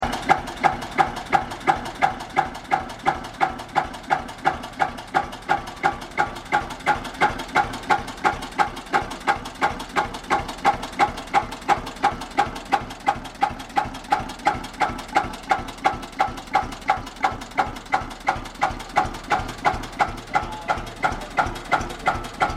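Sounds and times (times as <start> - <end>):
Eicher tractor engine: 0.0 - 22.5.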